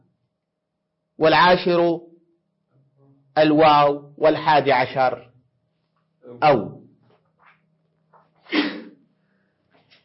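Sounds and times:
speech: 0:01.2 - 0:02.1, 0:03.4 - 0:05.3, 0:06.3 - 0:06.8
sneeze during a lesson on Arabic grammar: 0:08.4 - 0:09.0.

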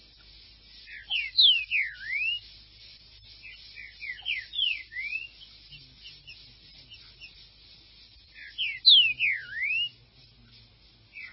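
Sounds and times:
green-winged saltator song whistles: 0:00.8 - 0:02.5, 0:03.4 - 0:07.4, 0:08.3 - 0:10.0.

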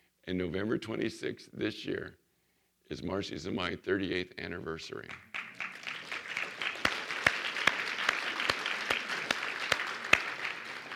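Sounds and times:
speech: 0:00.3 - 0:02.2, 0:02.9 - 0:05.5
audience applause: 0:05.3 - 0:10.9.

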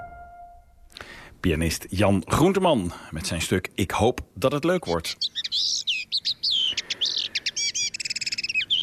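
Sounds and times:
speech: 0:01.4 - 0:05.9
common linnet singing: 0:04.7 - 0:08.8.

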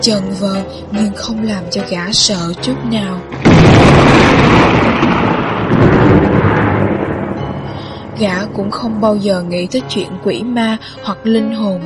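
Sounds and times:
speech: 0:00.0 - 0:05.2, 0:08.2 - 0:11.8
thunder rumbling: 0:03.3 - 0:09.3.

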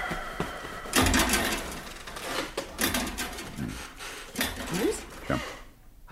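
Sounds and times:
bed springs creaking: 0:00.7 - 0:05.7.

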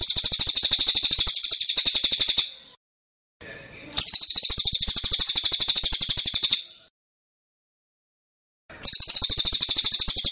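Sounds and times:
bird chirping: 0:00.0 - 0:02.8, 0:03.9 - 0:06.9, 0:08.7 - 0:10.2.

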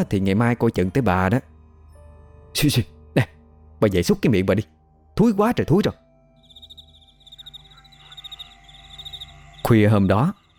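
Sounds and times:
speech: 0:00.0 - 0:01.5, 0:02.6 - 0:06.0, 0:09.7 - 0:10.4
insects chirping in the fields at night: 0:06.3 - 0:10.5.

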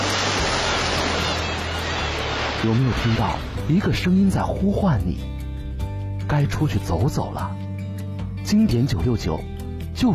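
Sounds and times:
ocean waves washing in a steady roar of surf: 0:00.0 - 0:04.4
speech: 0:02.6 - 0:05.4, 0:06.3 - 0:07.6, 0:08.4 - 0:10.1.

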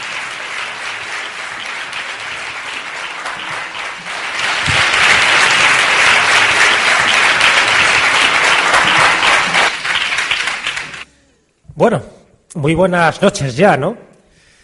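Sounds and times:
audience applause at a talk event: 0:00.0 - 0:11.1
speech: 0:11.8 - 0:14.1.

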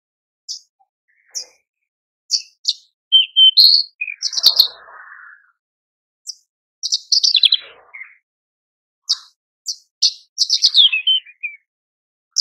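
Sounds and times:
Horsfield's bush lark singing: 0:00.4 - 0:05.6, 0:06.2 - 0:08.3, 0:09.0 - 0:11.7.

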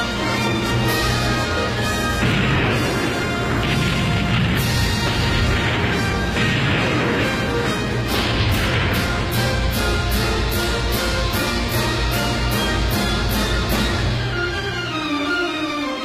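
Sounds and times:
orchestral climax of an overture with brass: 0:00.0 - 0:16.0
real cannon blasts in an overture performance: 0:01.7 - 0:10.9.

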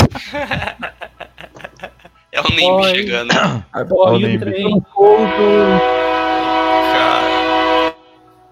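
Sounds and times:
laughter: 0:00.0 - 0:02.2
speech: 0:00.2 - 0:01.0, 0:02.4 - 0:05.9
train horn blast: 0:05.0 - 0:08.2.

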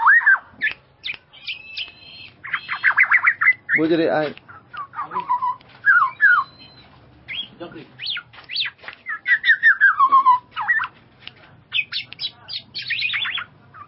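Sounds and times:
bird chirps: 0:00.0 - 0:11.0, 0:11.7 - 0:13.8.

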